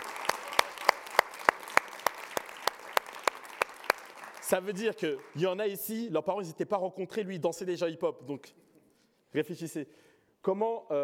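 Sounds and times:
audience applause falling into a steady rhythmic beat: 0.0 - 6.0
speech: 4.5 - 8.6, 9.3 - 11.0.

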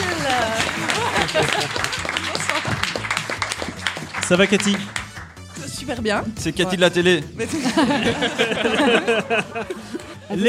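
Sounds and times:
laughter: 0.0 - 3.2, 7.4 - 10.4
audience applause: 0.0 - 5.6
speech: 4.3 - 5.0, 5.8 - 10.4.

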